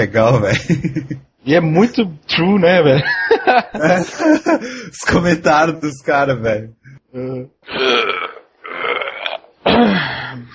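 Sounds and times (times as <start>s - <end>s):
speech: 0.0s - 8.4s
person retching or burping: 7.2s - 10.4s.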